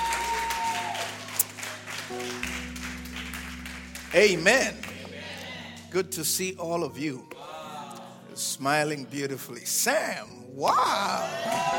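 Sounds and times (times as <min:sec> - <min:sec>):
audience clapping: 0:00.0 - 0:06.0, 0:10.6 - 0:11.7
speech: 0:04.1 - 0:04.8, 0:05.9 - 0:07.4, 0:08.6 - 0:11.7.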